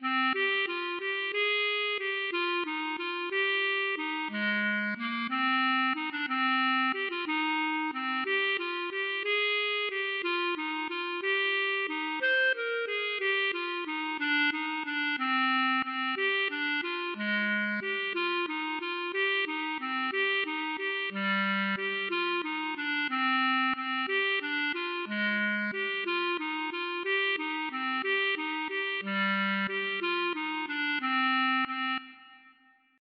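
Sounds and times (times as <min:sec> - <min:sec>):
waltz music: 0:00.0 - 0:32.4.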